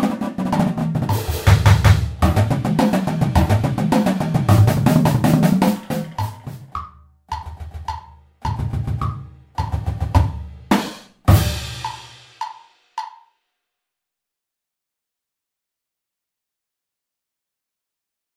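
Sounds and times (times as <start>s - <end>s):
drum flams: 0.0s - 13.1s.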